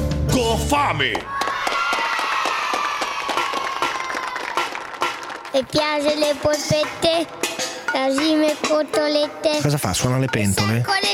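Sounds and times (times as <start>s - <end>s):
speech: 0.6s - 1.4s, 5.5s - 11.1s
audience applauding a child singer: 1.0s - 5.6s.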